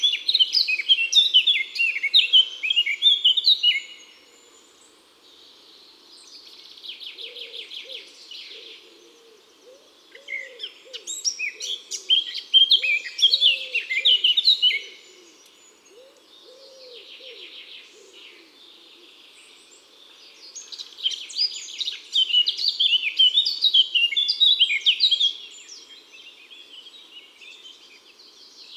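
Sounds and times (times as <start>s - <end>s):
Eurasian blackcap singing in woods and forests: 0.0s - 28.7s.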